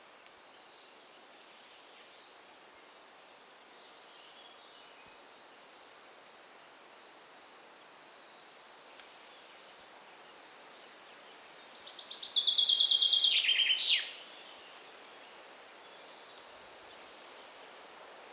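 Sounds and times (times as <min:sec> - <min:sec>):
common chaffinch Fringilla coelebs song: 0:11.7 - 0:14.2.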